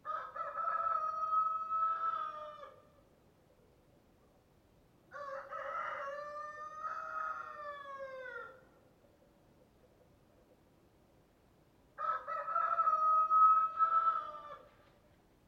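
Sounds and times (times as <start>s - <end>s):
rooster crowing cock-a-doodle-doo: 0.0s - 2.8s, 5.1s - 8.6s, 12.0s - 14.7s.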